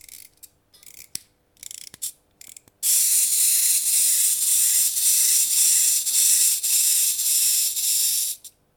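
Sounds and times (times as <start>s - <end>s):
toy sound: 2.8s - 8.4s.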